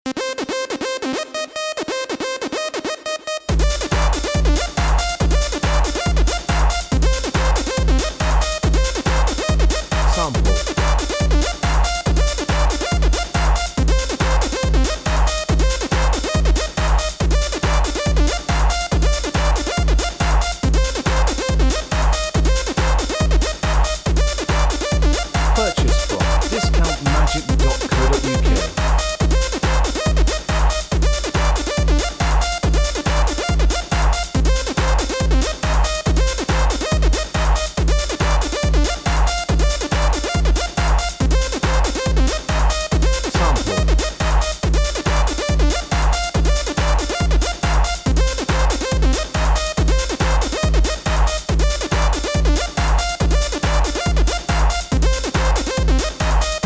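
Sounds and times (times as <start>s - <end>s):
techno backing track: 0.1s - 56.6s.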